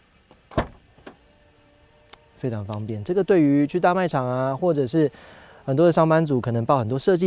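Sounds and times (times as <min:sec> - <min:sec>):
kick-sensor car power tailgate opening: 0:00.3 - 0:01.2
speech: 0:02.4 - 0:07.2.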